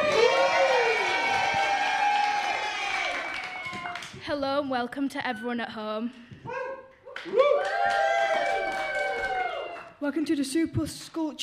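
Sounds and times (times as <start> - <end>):
studio audience cheering and whooping: 0.0 - 4.2, 7.1 - 9.9
speech: 4.6 - 6.6, 7.2 - 8.1, 10.0 - 11.4.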